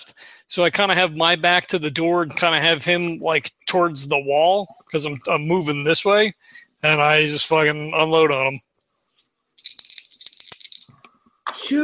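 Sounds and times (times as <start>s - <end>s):
speech: 0.5s - 8.7s, 11.7s - 11.8s
dice rolling: 9.6s - 11.0s.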